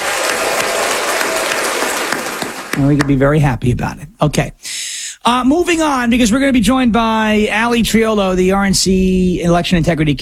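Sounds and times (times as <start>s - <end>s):
audience applause: 0.0s - 3.2s
speech: 2.8s - 10.2s.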